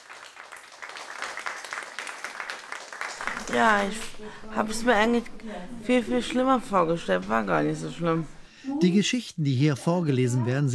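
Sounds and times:
audience applause after a reading: 0:00.0 - 0:04.4
speech: 0:03.5 - 0:10.7.

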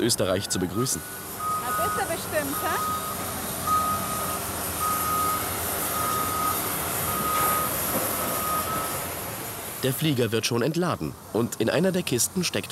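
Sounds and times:
speech: 0:00.0 - 0:03.1, 0:09.8 - 0:12.6
forklift reversing beeps: 0:00.3 - 0:09.1.

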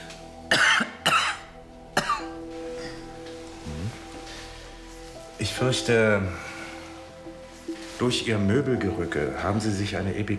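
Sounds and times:
person coughing on request during medical exam: 0:00.5 - 0:02.4
speech: 0:05.6 - 0:06.5, 0:08.0 - 0:10.3.

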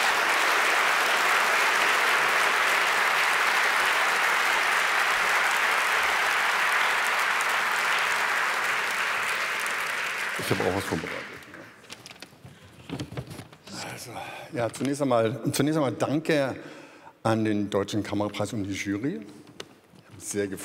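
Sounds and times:
audience applause: 0:00.0 - 0:11.8
speech: 0:10.5 - 0:11.4, 0:14.1 - 0:19.4, 0:20.2 - 0:20.6.

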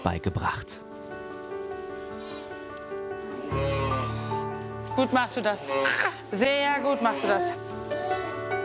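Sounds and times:
speech: 0:00.0 - 0:00.9, 0:03.5 - 0:03.8, 0:05.0 - 0:07.7
sheep bleating: 0:03.3 - 0:04.4, 0:05.2 - 0:08.5.

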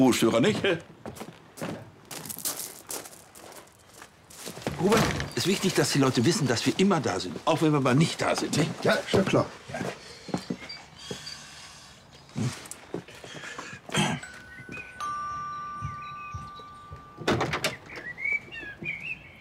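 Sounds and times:
speech: 0:00.0 - 0:01.3, 0:04.8 - 0:10.0
electronic doorbell ringing: 0:14.2 - 0:17.8
clattering knocks: 0:15.7 - 0:18.1.

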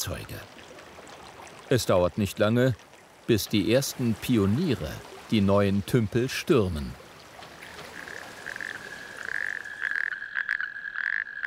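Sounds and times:
speech: 0:00.0 - 0:00.6, 0:01.7 - 0:07.0
male natterjack toads giving mating call: 0:07.6 - 0:11.4.

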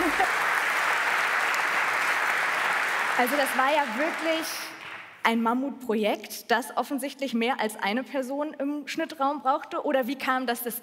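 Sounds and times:
audience applause: 0:00.0 - 0:05.1
speech: 0:03.2 - 0:10.8.

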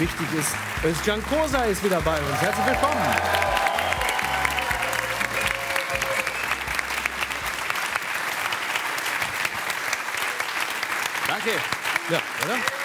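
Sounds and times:
speech: 0:00.0 - 0:03.7, 0:11.4 - 0:12.8
audience clapping: 0:00.0 - 0:12.8.

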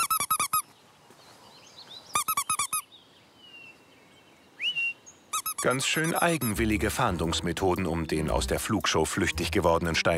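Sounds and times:
person imitating mouse squeaks to lure a little owl: 0:00.0 - 0:00.6, 0:02.2 - 0:02.8, 0:05.4 - 0:06.7
speech: 0:05.6 - 0:10.1.

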